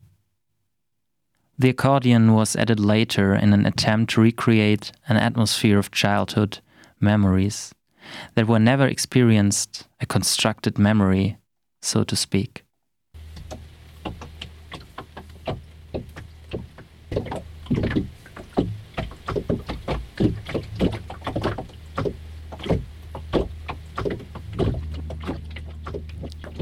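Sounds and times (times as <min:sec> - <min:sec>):
speech: 0:01.6 - 0:12.6
low steady hum aboard a boat: 0:13.2 - 0:26.5
rhythmic wooden knocks and ticks from a boat: 0:13.3 - 0:26.5.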